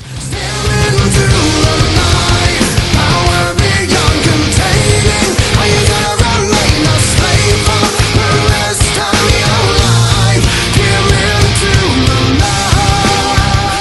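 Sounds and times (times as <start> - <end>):
metal music: 0.0 - 13.7.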